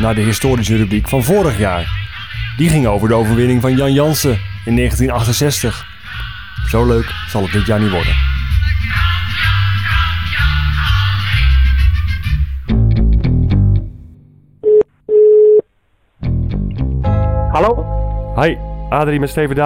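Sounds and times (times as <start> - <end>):
speech: 0.0 - 2.0, 2.6 - 8.3, 17.6 - 19.6
music: 0.0 - 14.2, 16.2 - 19.6
outgoing call telephone ringing tone: 14.6 - 15.6.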